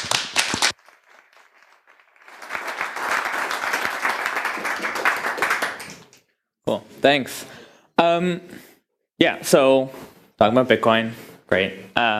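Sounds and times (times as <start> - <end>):
audience applause: 0.0 - 6.2
speech: 6.7 - 12.1.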